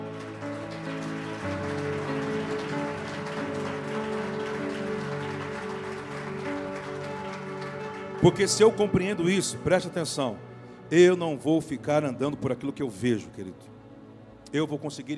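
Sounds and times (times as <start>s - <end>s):
crowd applause: 0.0s - 9.9s
speech: 8.2s - 13.8s, 14.5s - 15.1s.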